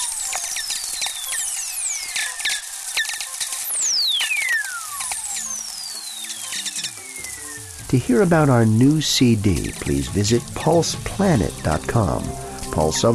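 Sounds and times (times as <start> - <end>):
lightning whistlers, radio tones gliding downward in pitch: 0.0 - 8.5
static clicks: 0.0 - 13.1
speech: 7.9 - 13.1.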